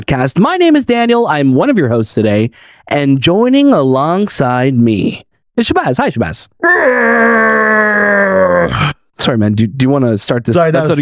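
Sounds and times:
speech: 0.0 - 11.0
man imitating Godzilla's roar: 6.6 - 9.0.

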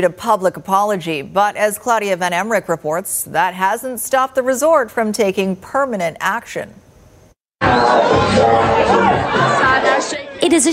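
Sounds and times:
speech: 0.0 - 6.8, 7.6 - 10.7
crowd partying at a restaurant at the Big White Ski Resort: 7.6 - 10.7.

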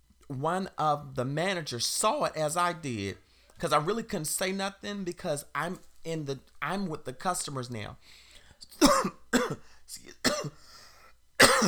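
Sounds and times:
speech: 0.3 - 10.6
choking coughs: 8.7 - 10.6, 11.4 - 11.6.

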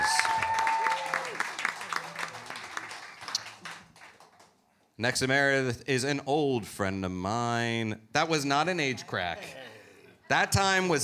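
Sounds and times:
audience applauding a guest at a horror festival: 0.0 - 4.6
speech: 5.0 - 9.6, 10.3 - 11.0.

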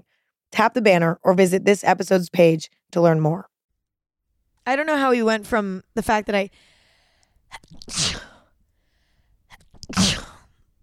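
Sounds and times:
speech: 0.5 - 3.5, 4.6 - 6.7, 7.5 - 8.3
person sneezing: 7.5 - 8.5, 9.5 - 10.6.

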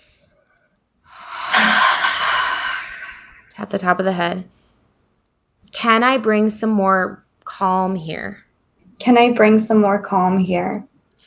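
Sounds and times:
deep breath drawn in through the nose during a guided meditation: 1.1 - 3.6
speech: 3.6 - 4.6, 5.8 - 8.4, 9.0 - 10.9.

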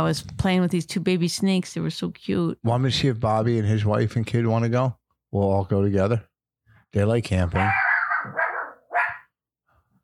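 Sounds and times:
speech: 0.0 - 6.3, 6.9 - 8.4
dog barking: 7.6 - 9.3.

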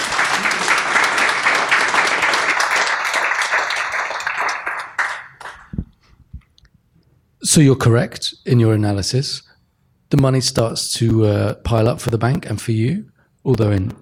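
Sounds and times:
audience applause: 0.0 - 5.8
speech: 7.6 - 9.5, 10.1 - 14.0.

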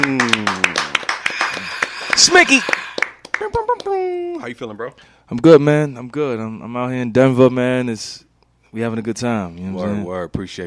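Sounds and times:
small group scattered hand claps: 0.0 - 3.9
speech: 2.2 - 2.8, 4.4 - 10.6.

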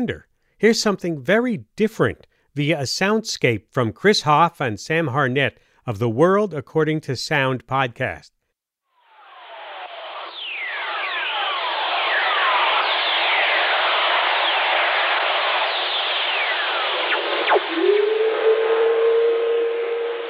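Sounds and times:
speech: 0.0 - 8.4
lightning radio emissions, earth whistlers: 9.0 - 20.2.

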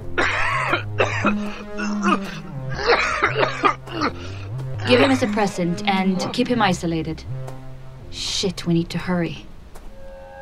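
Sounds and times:
droning musical tone: 0.0 - 10.4
harsh raspy coughing: 0.2 - 5.6
speech: 4.9 - 7.4, 8.1 - 9.5.

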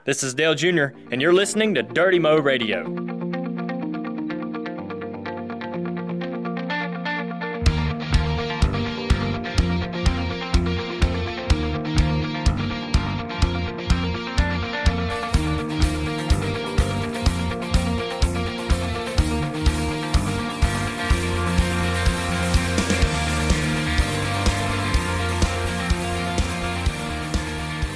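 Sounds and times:
speech: 0.1 - 3.1
full-band rock podcast theme song: 0.2 - 27.9.

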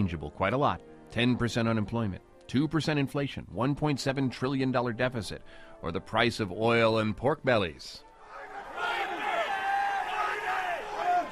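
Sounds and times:
speech: 0.0 - 8.1
traders shouting in a futures trading pit: 8.2 - 11.3.

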